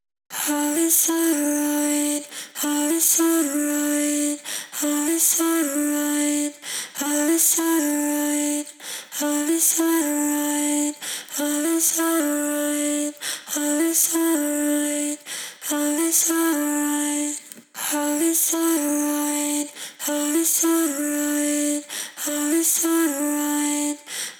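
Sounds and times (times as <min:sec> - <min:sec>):
person singing: 0:00.3 - 0:24.3.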